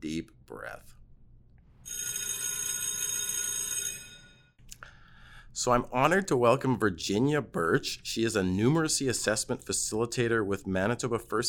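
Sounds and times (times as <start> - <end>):
speech: 0.1 - 1.0, 5.6 - 11.4
electric school bell ringing: 1.9 - 4.5.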